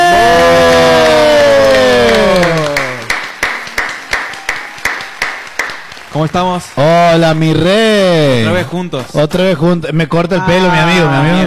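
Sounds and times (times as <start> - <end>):
audience applause: 0.0 - 8.6
speech: 6.2 - 11.4.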